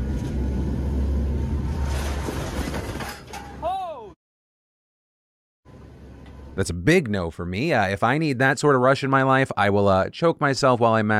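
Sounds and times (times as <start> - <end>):
hurricane hunter plane flying into Hurricane Ian: 0.0 - 2.8
speech: 6.6 - 11.1.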